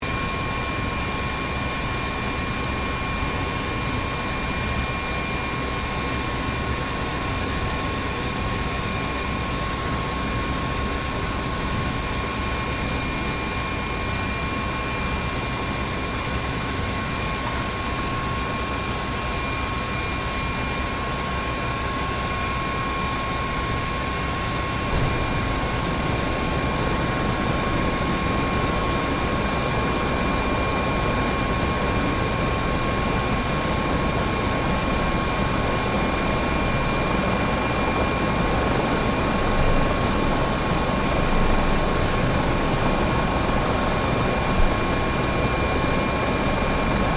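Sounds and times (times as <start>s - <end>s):
HH-65 Dolphin helicopter shutting off: 0.1s - 47.1s.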